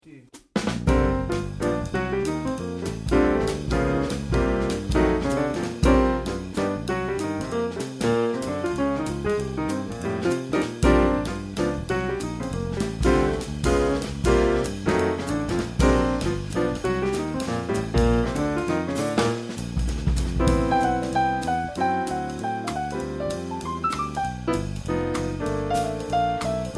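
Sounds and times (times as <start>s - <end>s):
jazz drum kit playing: 0.0s - 26.7s.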